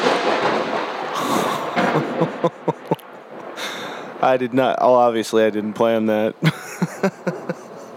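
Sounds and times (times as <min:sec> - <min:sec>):
thunder: 0:00.0 - 0:04.2
laughter: 0:01.2 - 0:03.0, 0:06.4 - 0:07.9
speech: 0:02.0 - 0:02.8, 0:04.2 - 0:07.6.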